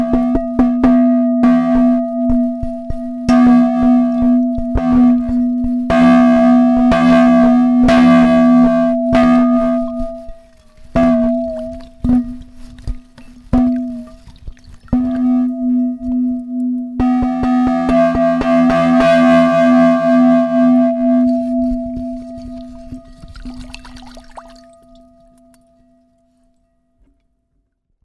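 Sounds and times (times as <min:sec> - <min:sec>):
copper fire gong of a Gamelan: 0:00.0 - 0:14.3, 0:15.0 - 0:26.2.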